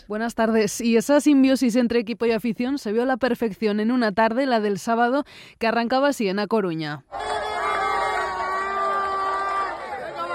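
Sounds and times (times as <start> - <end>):
speech: 0.0 - 7.4
crowd chanting: 7.1 - 10.3
fans cheering and shouting to welcome a team bus: 7.1 - 10.3.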